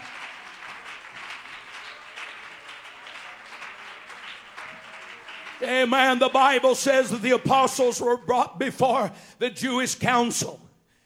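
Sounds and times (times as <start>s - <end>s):
audience clapping hands: 0.0s - 8.1s
speech: 5.6s - 10.6s.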